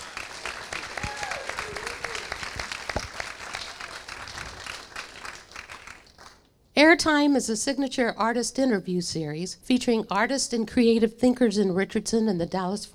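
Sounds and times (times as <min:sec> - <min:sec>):
audience applause: 0:00.0 - 0:06.4
speech: 0:07.0 - 0:12.9.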